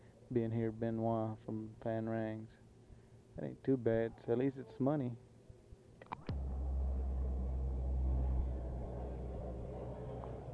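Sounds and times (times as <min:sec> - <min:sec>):
speech: 0:00.3 - 0:02.6, 0:03.4 - 0:05.3
military jet plane taking off: 0:06.3 - 0:10.5.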